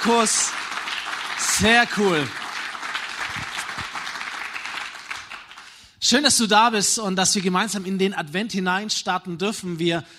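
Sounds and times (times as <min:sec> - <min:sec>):
speech: 0:00.0 - 0:00.8, 0:01.6 - 0:02.4, 0:06.0 - 0:10.1
audience applause: 0:00.0 - 0:05.8.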